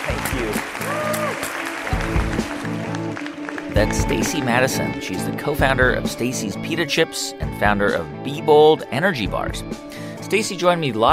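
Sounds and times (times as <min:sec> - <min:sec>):
audience applause at a live stage interview event: 0:00.0 - 0:05.4
walk-off music with low bass notes and chords: 0:00.0 - 0:11.1
speech: 0:03.8 - 0:11.1.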